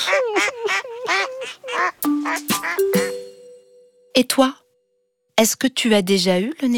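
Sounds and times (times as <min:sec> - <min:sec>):
voice quacking like a duck: 0:00.1 - 0:02.9
speech: 0:04.2 - 0:04.6, 0:05.4 - 0:06.7.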